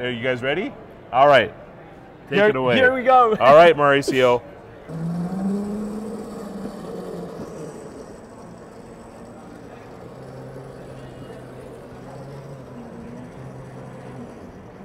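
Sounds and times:
speech: 0:00.0 - 0:01.6, 0:02.3 - 0:05.1
car engine drone in a racing video game: 0:04.9 - 0:14.8.

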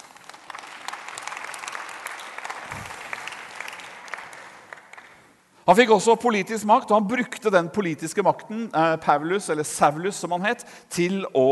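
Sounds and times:
audience applause: 0:00.0 - 0:05.2
speech: 0:05.7 - 0:11.5.

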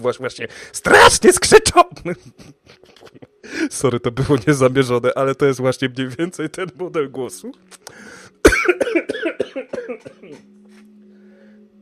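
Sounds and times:
speech: 0:00.0 - 0:10.6
man coughing after choking: 0:08.4 - 0:10.4.

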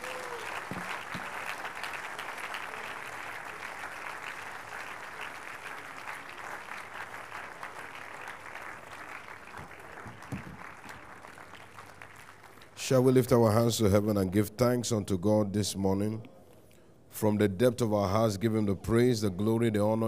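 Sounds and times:
audience applause: 0:00.0 - 0:12.8
speech: 0:12.9 - 0:16.3, 0:17.2 - 0:20.0.

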